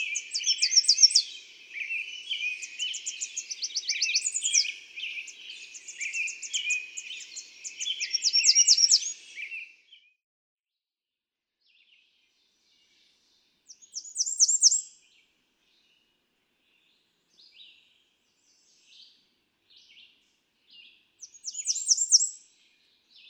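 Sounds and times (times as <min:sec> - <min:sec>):
American redstart singing: 0:00.0 - 0:10.1, 0:11.7 - 0:16.0, 0:16.6 - 0:23.2.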